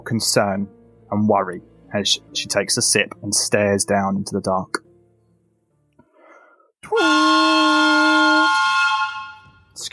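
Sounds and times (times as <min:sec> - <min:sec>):
speech: 0:00.1 - 0:04.8, 0:09.8 - 0:09.9
lumberyard work whistle: 0:06.9 - 0:09.7.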